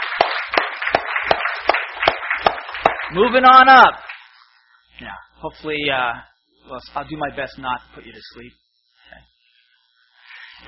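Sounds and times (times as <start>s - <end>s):
audience clapping welcoming new seventh graders at Cornerstone: 0.0s - 3.4s, 4.0s - 4.2s
speech: 3.1s - 4.0s, 5.0s - 9.3s.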